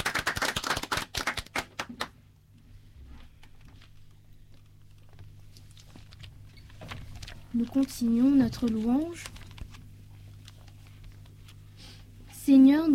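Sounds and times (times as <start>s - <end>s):
audience applause: 0.0s - 2.1s
speech: 7.6s - 9.4s.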